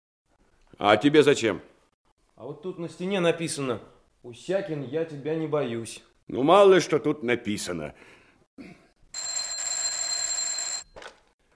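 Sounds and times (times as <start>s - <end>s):
speech: 0.8s - 1.7s, 2.4s - 8.8s
telephone ringing at a duty officer's desk: 9.2s - 11.3s.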